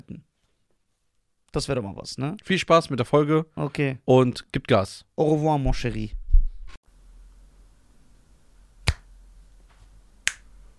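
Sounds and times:
speech: 1.5s - 6.2s
finger snapping: 8.8s - 9.1s.

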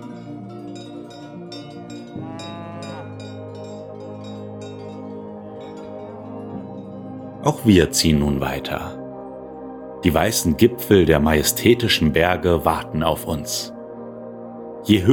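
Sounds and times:
cattle lowing: 0.0s - 5.0s
many cowbells clanging on a cattle herd: 0.0s - 7.6s
speech: 7.4s - 9.0s, 10.0s - 13.8s, 14.9s - 15.1s.

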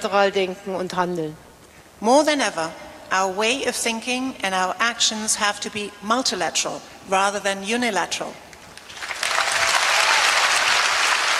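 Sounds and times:
speech: 0.0s - 8.4s
audience applause at Harvard University speech: 8.9s - 11.3s.

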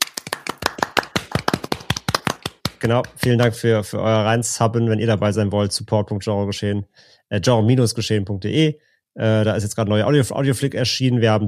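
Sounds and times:
hand clapping: 0.0s - 3.6s
speech: 2.8s - 11.4s.

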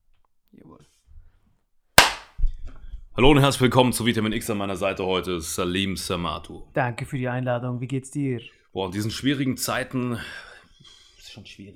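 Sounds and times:
hand clap: 2.0s - 2.4s
speech: 3.2s - 10.5s, 11.3s - 11.7s.

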